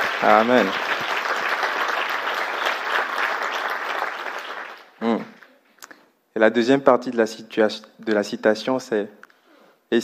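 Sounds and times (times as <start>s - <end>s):
audience applauding: 0.0s - 5.4s
speech: 0.2s - 0.9s, 6.4s - 9.2s.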